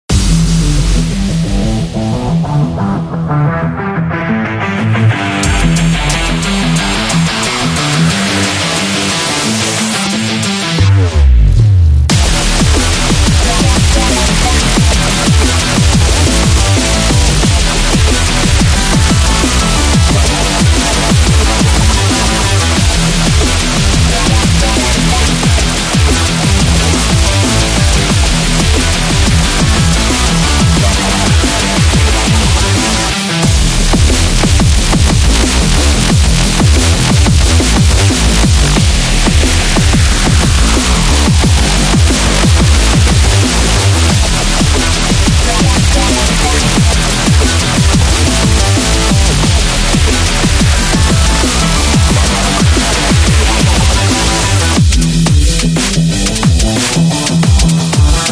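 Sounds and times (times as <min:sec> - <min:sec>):
dubstep music: 0:00.0 - 0:58.3.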